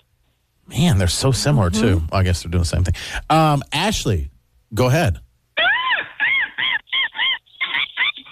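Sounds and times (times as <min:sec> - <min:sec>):
speech: 0:00.8 - 0:05.2
person imitating a seagull call: 0:01.4 - 0:02.1, 0:05.6 - 0:08.3.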